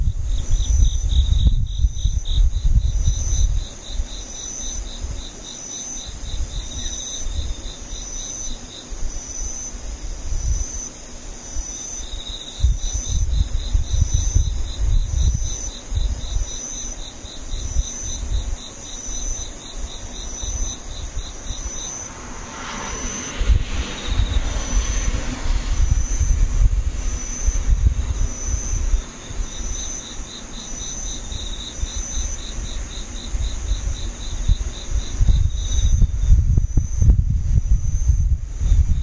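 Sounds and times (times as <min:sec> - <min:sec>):
insects trilling: 0:00.0 - 0:39.0
low rumble: 0:21.1 - 0:28.7.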